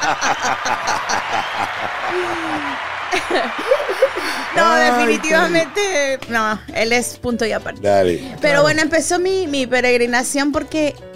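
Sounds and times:
people chuckling: 0.0s - 5.6s
crowd applauding: 0.0s - 6.7s
speech: 0.1s - 11.1s.

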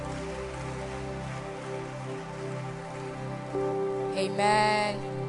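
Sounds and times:
audience clapping: 0.0s - 4.1s
speech: 4.2s - 5.1s.

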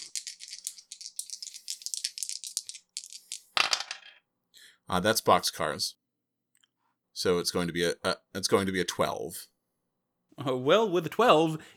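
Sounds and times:
dice rattling and clattering across a hard tabletop: 0.0s - 4.2s
speech: 4.9s - 6.0s, 7.2s - 9.5s, 10.4s - 11.7s.

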